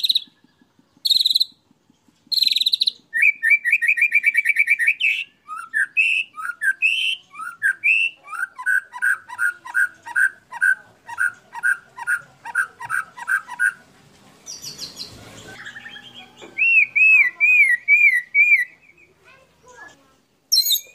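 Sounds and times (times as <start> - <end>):
canary singing: 0.0 - 20.9.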